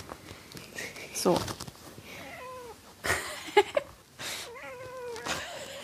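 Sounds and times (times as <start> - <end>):
speech: 1.2 - 1.6
cat meowing: 2.2 - 2.8, 4.4 - 5.5.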